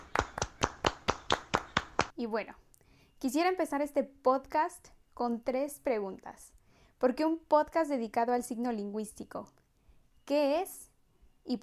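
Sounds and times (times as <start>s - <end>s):
single pair of hands clapping: 0.0s - 2.1s
speech: 2.2s - 9.6s, 10.3s - 11.6s.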